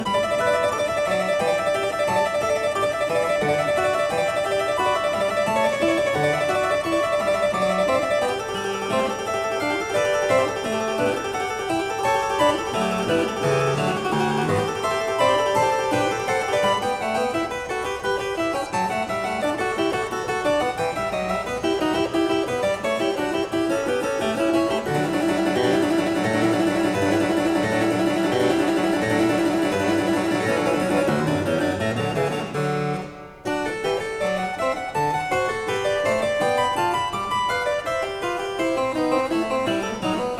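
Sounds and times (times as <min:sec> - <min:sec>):
harpsichord variation for two keyboards: 0:00.0 - 0:40.3.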